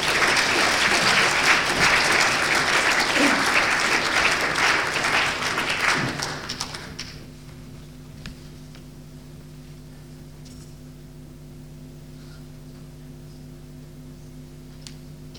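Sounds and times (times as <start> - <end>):
audience at a poetry reading in Hull applauding: 0.0 - 7.2.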